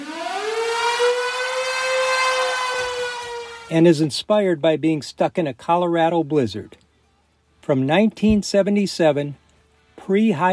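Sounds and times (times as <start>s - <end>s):
storm siren wailing at the opening of a live 1977 rock song: 0.0s - 3.8s
speech: 3.7s - 6.8s, 7.7s - 9.4s, 10.1s - 10.5s.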